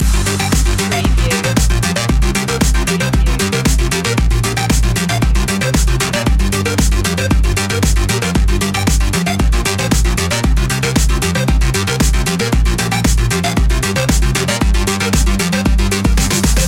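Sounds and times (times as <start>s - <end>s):
electro circuit loop: 0.0s - 16.6s.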